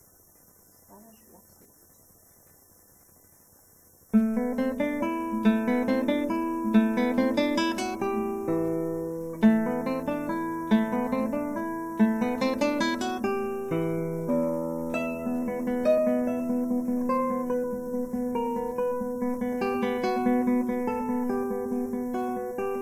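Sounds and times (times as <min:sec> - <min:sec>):
guitar: 0:04.1 - 0:22.7.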